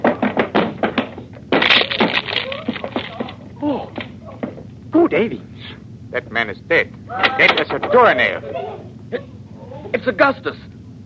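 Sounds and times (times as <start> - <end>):
locked cabin door aboard a ship being broken down: 0.0 - 4.7
speech: 5.1 - 5.5, 6.1 - 9.3, 10.0 - 10.7.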